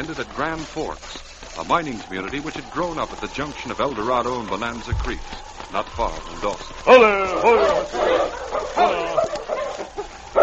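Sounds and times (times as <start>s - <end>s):
speech: 0.0s - 10.0s
sled dog barking and yipping: 6.8s - 10.4s.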